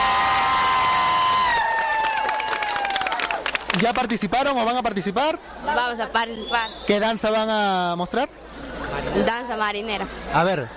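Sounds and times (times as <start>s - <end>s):
audience applause: 0.0s - 4.1s
speech: 3.8s - 10.7s.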